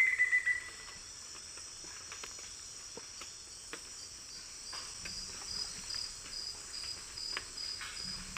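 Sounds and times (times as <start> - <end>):
black-faced antthrush song in eastern lowlands of South America: 0.0 - 1.0.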